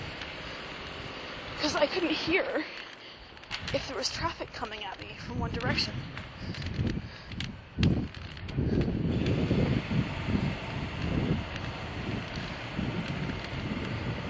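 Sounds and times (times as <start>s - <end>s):
breeze blowing outdoors: 0.0s - 14.2s
speech: 1.6s - 2.8s, 3.7s - 6.9s.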